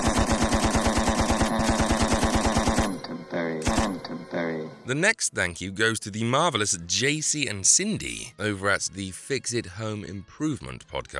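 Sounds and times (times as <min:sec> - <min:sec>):
machine gun fire sound effect: 0:00.0 - 0:03.0, 0:03.6 - 0:04.1
speech: 0:04.9 - 0:11.1.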